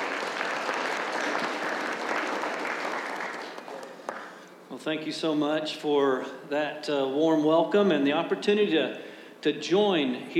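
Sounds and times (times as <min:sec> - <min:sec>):
audience applause: 0:00.0 - 0:04.3
speech: 0:04.8 - 0:10.3.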